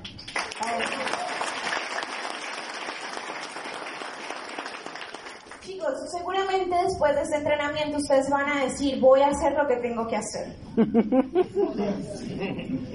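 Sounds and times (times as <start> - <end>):
audience applause: 0.0 - 5.6
speech: 0.6 - 1.1, 5.8 - 12.9
laughter: 10.8 - 12.9.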